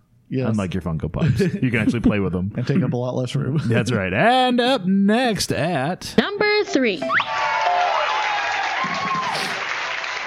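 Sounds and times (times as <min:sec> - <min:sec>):
speech: 0:00.3 - 0:07.4
whistles and cheers: 0:07.0 - 0:10.2
audience clapping: 0:07.2 - 0:10.2.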